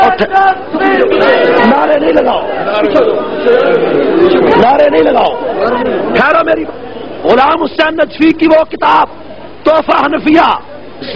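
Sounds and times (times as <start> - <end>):
crowd chanting slogans at a religious rally: 0.0 - 6.2
speech: 0.1 - 11.1.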